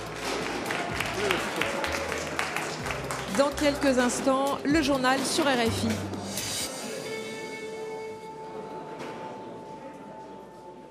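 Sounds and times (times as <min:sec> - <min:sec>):
applause: 0:00.0 - 0:04.3
speech: 0:03.4 - 0:06.2.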